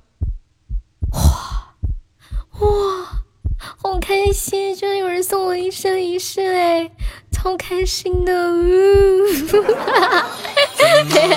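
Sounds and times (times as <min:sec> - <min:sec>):
rapid heartbeat sound effect: 0:00.0 - 0:04.6, 0:07.0 - 0:10.1
speech: 0:04.1 - 0:11.3
laughter: 0:09.3 - 0:11.3.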